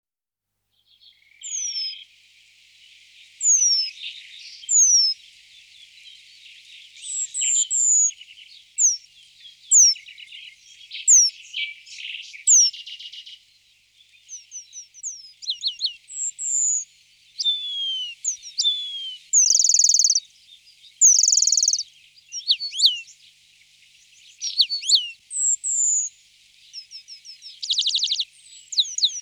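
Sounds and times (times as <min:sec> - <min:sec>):
Eurasian penduline tit whistles, trills and chirps: 0:00.9 - 0:02.1, 0:03.4 - 0:05.2, 0:06.9 - 0:13.4, 0:14.1 - 0:20.2, 0:20.9 - 0:23.2, 0:24.1 - 0:29.1.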